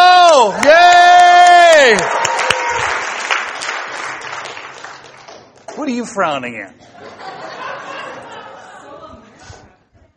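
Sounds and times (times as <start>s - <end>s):
audience applause: 0.4s - 6.0s
speech: 6.0s - 7.5s
laughter: 6.8s - 9.9s.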